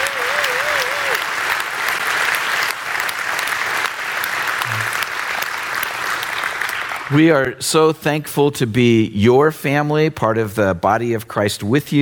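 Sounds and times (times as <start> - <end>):
audience applause: 0.0 - 7.2
speech: 7.1 - 12.0.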